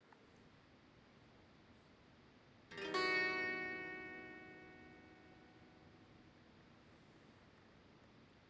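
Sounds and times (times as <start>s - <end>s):
musical chord: 2.7s - 6.9s.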